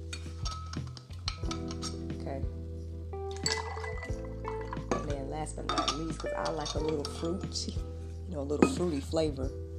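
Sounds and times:
glass clinking: 0.1s - 2.0s, 3.3s - 7.8s, 8.6s - 9.0s
milk pouring into a glass: 3.3s - 5.0s
speech: 5.4s - 9.6s.

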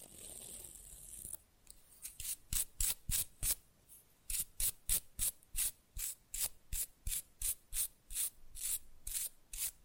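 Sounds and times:
rough nail filing: 2.0s - 3.6s, 4.3s - 9.8s.

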